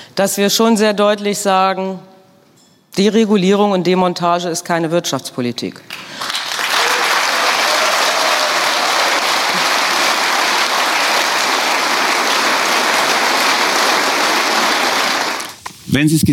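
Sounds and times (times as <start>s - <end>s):
speech: 0.2s - 2.1s, 3.0s - 6.4s, 15.9s - 16.3s
large crowd applause after a speech: 5.9s - 15.6s.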